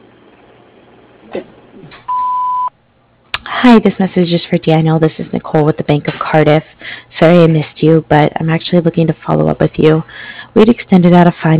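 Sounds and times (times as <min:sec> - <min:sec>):
speech: 0:01.3 - 0:02.1, 0:03.6 - 0:11.5
voicemail answering machine beep tone: 0:02.1 - 0:02.7.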